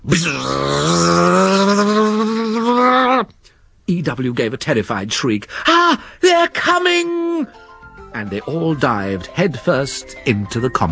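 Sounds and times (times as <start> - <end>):
voice imitating a chainsaw roaring: 0.0 - 3.3
speech: 0.1 - 0.8, 3.9 - 10.9.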